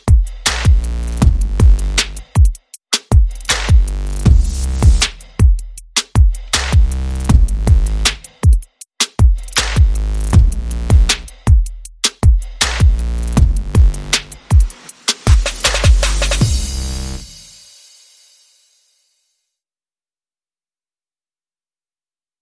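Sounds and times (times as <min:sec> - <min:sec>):
bass: 0:00.0 - 0:02.4, 0:03.1 - 0:08.4, 0:09.2 - 0:14.5, 0:15.3 - 0:17.4
drums: 0:00.0 - 0:18.7.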